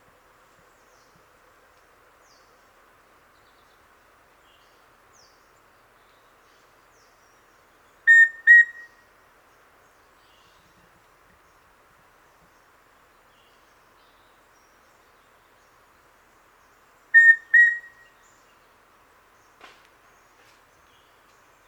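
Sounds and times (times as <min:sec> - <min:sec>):
Formicarius rufipectus rufous-breasted antthrush song: 0:08.1 - 0:09.0, 0:17.2 - 0:18.2.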